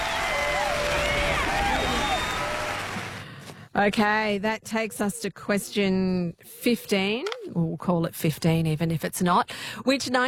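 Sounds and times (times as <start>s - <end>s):
high whistles and cheers: 0.0s - 3.2s
audience clapping: 0.0s - 3.3s
speech: 3.8s - 10.2s.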